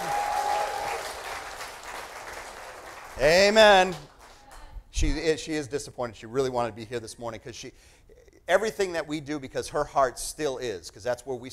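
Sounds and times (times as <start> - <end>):
audience hand clapping: 0.0 - 4.7
speech: 3.2 - 4.1, 5.0 - 11.5.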